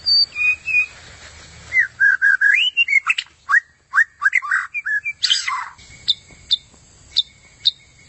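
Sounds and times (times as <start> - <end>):
White-rumped shama singing varied whistled phrases with harsh note: 0.0 - 0.9, 1.7 - 6.6.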